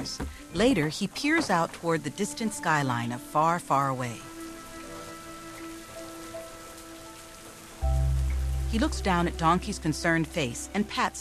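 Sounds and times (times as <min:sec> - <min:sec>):
speech: 0:00.0 - 0:04.3, 0:08.7 - 0:11.1
rain falling at night: 0:00.0 - 0:11.1
loud low rumble: 0:07.8 - 0:10.2.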